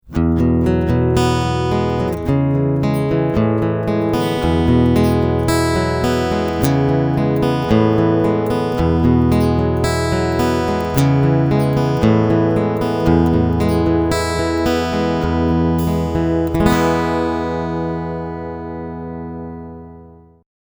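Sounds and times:
major key guitar picking: 0.0s - 20.4s.

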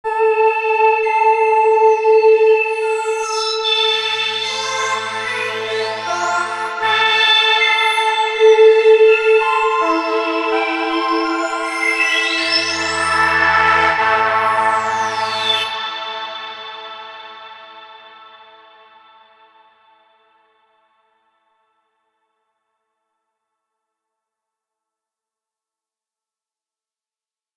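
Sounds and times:
Waldorf Streichfett plug-in synthesizer strings: 0.2s - 19.4s.

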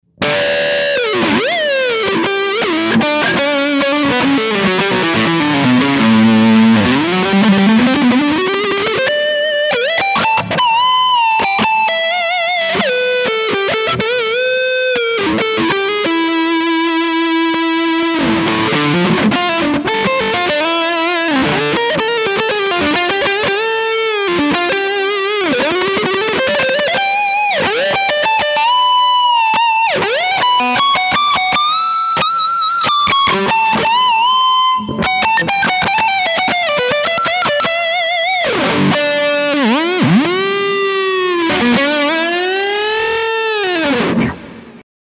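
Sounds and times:
high-gain lead guitar with Floyd Rose tremolo: 0.0s - 44.8s.

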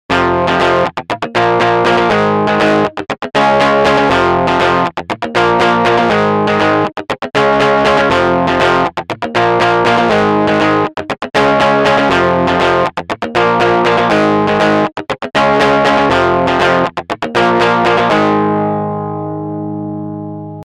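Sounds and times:
guitarist playing: 0.1s - 20.6s.

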